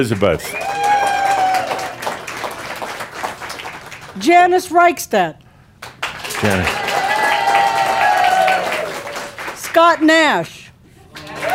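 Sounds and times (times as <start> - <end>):
speech: 0.0 - 0.8, 4.2 - 5.4, 6.4 - 6.8, 9.8 - 10.6
audience clapping: 0.0 - 4.6, 5.8 - 11.5.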